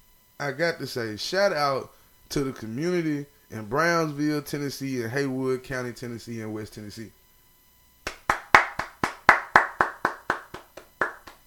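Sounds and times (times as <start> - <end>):
speech: 0.4 - 7.2
hand clapping: 8.0 - 11.4.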